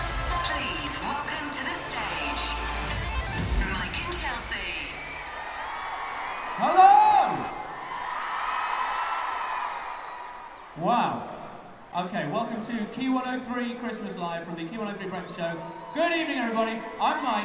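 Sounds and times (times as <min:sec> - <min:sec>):
audience applause: 0:00.0 - 0:10.6
audience cheering: 0:00.0 - 0:11.9, 0:15.4 - 0:17.4
speech: 0:12.1 - 0:17.4.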